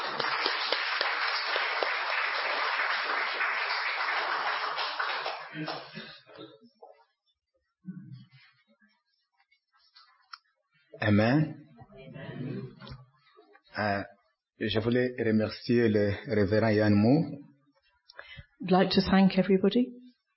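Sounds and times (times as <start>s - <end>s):
church congregation applauding to welcome a pastor: 0.0s - 6.3s
speech: 5.6s - 5.9s, 11.1s - 11.6s, 13.8s - 17.5s, 18.6s - 20.0s.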